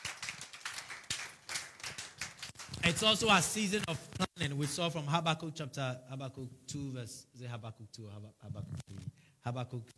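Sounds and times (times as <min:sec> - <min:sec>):
audience clapping: 0:00.0 - 0:04.9
speech: 0:02.8 - 0:08.8, 0:09.4 - 0:09.9.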